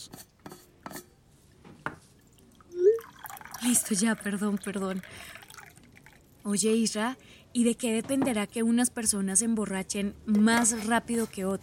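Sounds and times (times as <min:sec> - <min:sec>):
coffee being poured: 0:02.2 - 0:06.5
speech: 0:03.6 - 0:05.4, 0:06.4 - 0:11.6.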